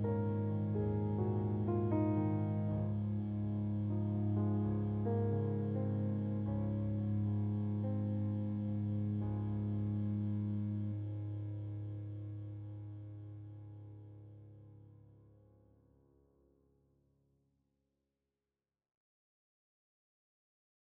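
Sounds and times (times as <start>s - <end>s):
musette: 0.0s - 14.1s
piano: 0.0s - 16.2s.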